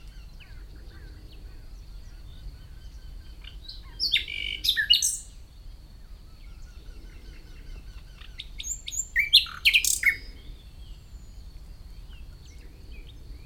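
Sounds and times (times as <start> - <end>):
common nightingale singing: 0.0 - 13.4.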